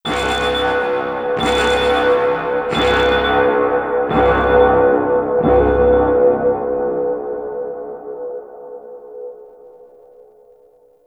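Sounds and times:
alarm: 0.0 - 6.7.

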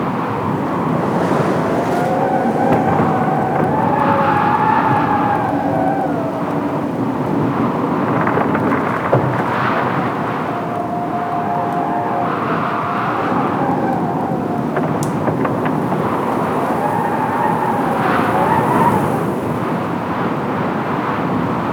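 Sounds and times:
ice outdoor ambience: 0.0 - 21.7.

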